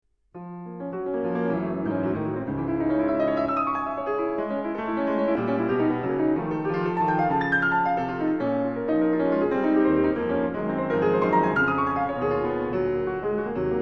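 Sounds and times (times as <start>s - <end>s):
piano nocturne in B: 0.4s - 13.7s.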